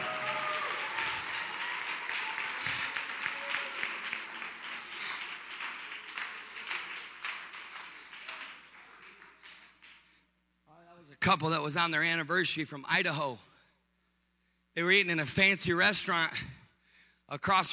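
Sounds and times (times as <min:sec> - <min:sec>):
audience clapping hands: 0:00.0 - 0:10.3
speech: 0:11.3 - 0:13.5, 0:14.8 - 0:16.6, 0:17.3 - 0:17.7.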